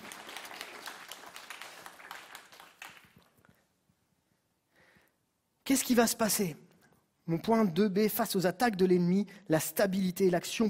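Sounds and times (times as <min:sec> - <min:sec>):
audience applause: 0:00.0 - 0:03.4
speech: 0:05.7 - 0:06.6, 0:07.3 - 0:10.6.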